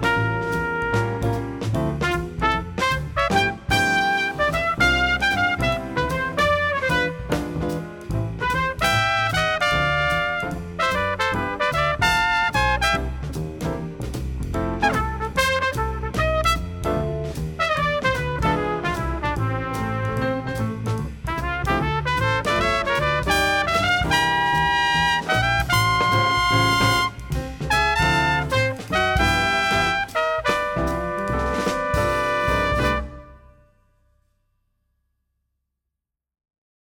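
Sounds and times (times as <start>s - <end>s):
jazz trumpet: 0.0s - 34.0s.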